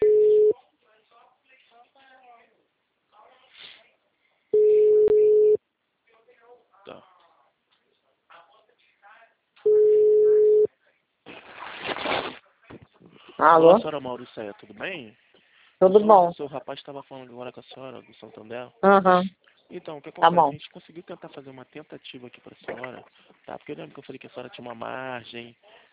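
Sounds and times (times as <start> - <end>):
WhatsApp outgoing call ringback tones: 0.0 - 0.5, 4.6 - 5.6, 9.7 - 10.7
burst of noise: 11.3 - 12.4
speech: 13.4 - 25.9.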